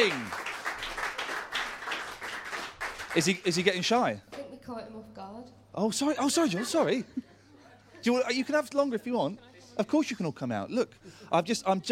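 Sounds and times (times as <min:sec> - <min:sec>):
speech: 0:00.0 - 0:00.4, 0:03.1 - 0:07.3, 0:08.0 - 0:11.9
faint audience applause: 0:00.0 - 0:03.7.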